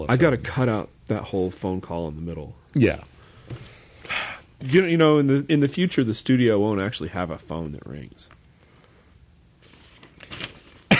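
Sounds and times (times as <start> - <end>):
speech: 0.0 - 3.7, 4.6 - 8.4
shuffling newspaper pages: 9.6 - 10.9.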